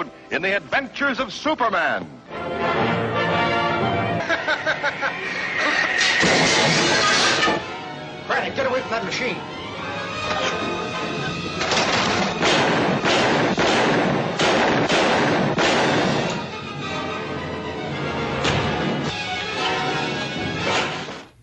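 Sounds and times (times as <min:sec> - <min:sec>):
speech: 0:00.0 - 0:03.2, 0:08.3 - 0:09.6
dense noisy backdrop: 0:04.1 - 0:21.4
laughter: 0:04.2 - 0:07.6, 0:10.2 - 0:11.8
gunshots in a Superman radio drama: 0:11.6 - 0:16.5.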